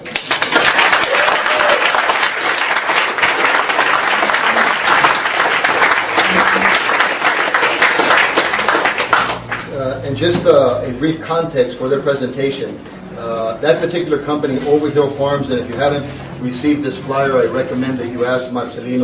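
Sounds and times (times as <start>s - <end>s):
audience applause: 0.0s - 9.7s
speech: 10.2s - 13.0s, 13.6s - 19.0s.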